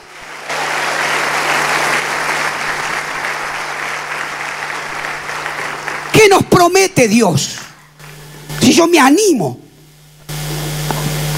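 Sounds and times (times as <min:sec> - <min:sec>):
audience applause: 0:00.0 - 0:06.9
speech: 0:06.2 - 0:07.6, 0:08.7 - 0:09.6.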